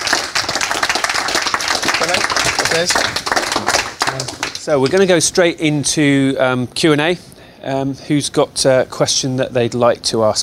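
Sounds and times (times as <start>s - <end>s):
crowd applauding: 0.0s - 5.1s
speech: 2.8s - 10.4s.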